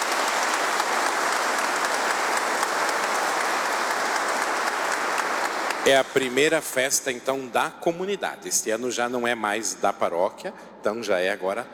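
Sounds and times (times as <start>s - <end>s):
audience applause: 0.0s - 6.3s
speech: 5.8s - 11.7s.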